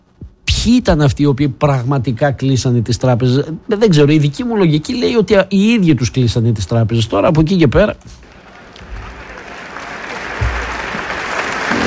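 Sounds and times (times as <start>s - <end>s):
low thumps: 0.1s - 0.5s
speech: 0.6s - 8.3s
audience applause: 8.2s - 11.8s.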